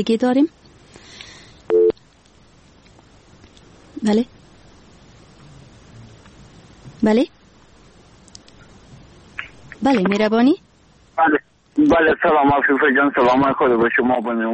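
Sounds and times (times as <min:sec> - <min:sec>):
speech: 0:00.0 - 0:00.6, 0:04.0 - 0:04.4, 0:07.0 - 0:07.4, 0:09.8 - 0:10.6, 0:11.2 - 0:14.5
faint hiss: 0:00.0 - 0:14.5
telephone busy tone beeps after a call drops: 0:01.7 - 0:02.0.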